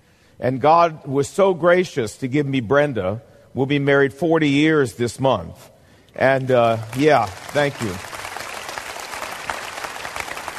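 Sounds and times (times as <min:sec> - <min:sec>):
speech: 0:00.4 - 0:08.2
audience clapping for a speaker at a talk: 0:06.3 - 0:10.5.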